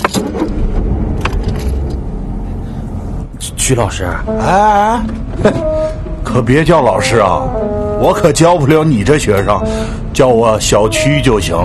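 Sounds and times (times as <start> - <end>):
car engine rumbling as the vehicle pulls away: 0.0 - 11.6
speech: 3.7 - 11.6.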